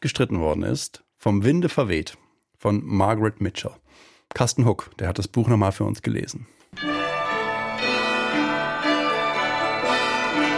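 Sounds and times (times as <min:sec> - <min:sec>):
speech: 0:00.0 - 0:07.0
bells ringing in a steady peal: 0:06.8 - 0:10.5.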